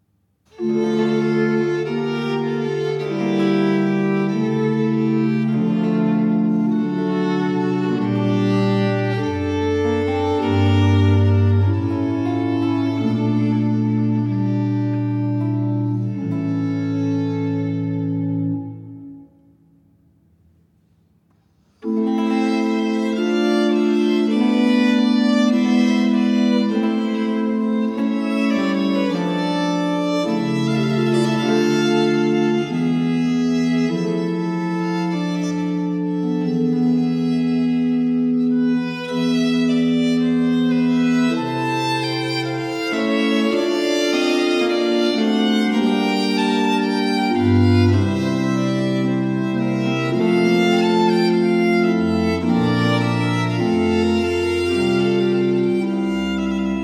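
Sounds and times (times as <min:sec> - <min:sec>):
slow sonata movement in E minor: 0:00.2 - 0:56.8.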